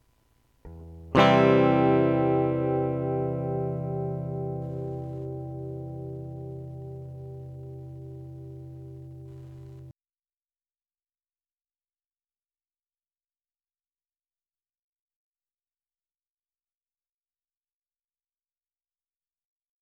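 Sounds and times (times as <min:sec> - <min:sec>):
music in C major: 0:00.7 - 0:09.9.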